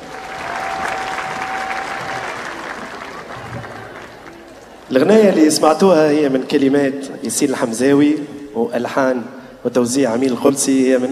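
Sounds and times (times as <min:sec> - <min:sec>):
audience applauding a conductor and national orchestra after a concert: 0:00.0 - 0:04.9
speech: 0:04.9 - 0:11.1.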